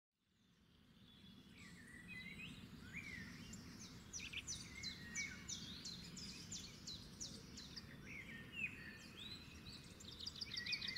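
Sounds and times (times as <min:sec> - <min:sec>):
several birds singing in the morning: 0:00.4 - 0:10.9.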